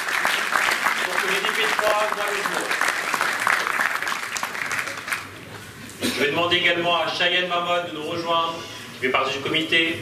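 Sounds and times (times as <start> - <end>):
audience applause at an awards ceremony: 0.0 - 5.4
speech: 1.6 - 2.9, 6.2 - 10.0.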